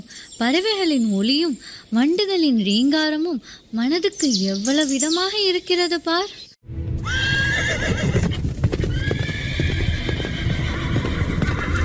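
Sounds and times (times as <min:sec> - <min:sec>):
speech: 0:00.4 - 0:06.4
horse whinnying: 0:07.0 - 0:11.8
horse-drawn chariot hooves and wheels rumbling: 0:07.0 - 0:11.8.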